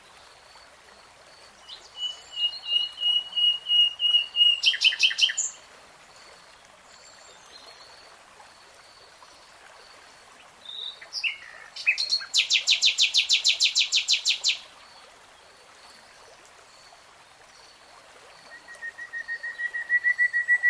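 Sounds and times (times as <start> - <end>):
nightingale song: 1.6 - 5.6, 10.6 - 15.0, 18.4 - 20.6.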